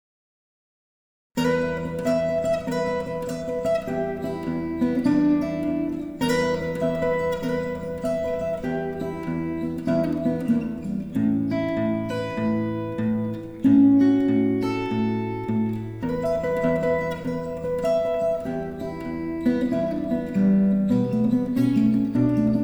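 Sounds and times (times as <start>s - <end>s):
blues music: 1.4s - 22.6s.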